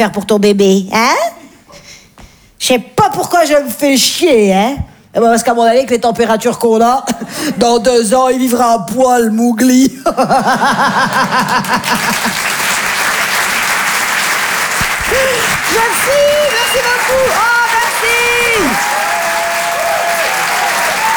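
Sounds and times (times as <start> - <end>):
speech: 0.0 - 1.4, 2.6 - 12.6
laughter: 10.1 - 12.8
audience applause: 10.9 - 21.1.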